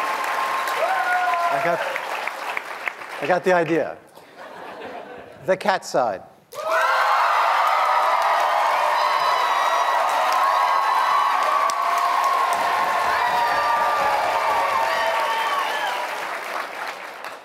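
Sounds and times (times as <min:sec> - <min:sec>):
audience cheering and whoops: 0:00.0 - 0:02.7, 0:06.5 - 0:17.1
audience applause: 0:00.0 - 0:03.9, 0:06.6 - 0:17.4
speech: 0:01.5 - 0:02.0, 0:03.2 - 0:04.1, 0:05.4 - 0:06.3
laughter: 0:04.2 - 0:05.4.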